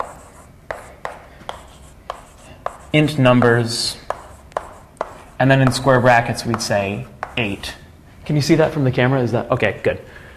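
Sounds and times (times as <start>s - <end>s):
writing on a board during a programming lecture: 0.0s - 7.8s
speech: 2.9s - 4.0s, 5.4s - 10.2s.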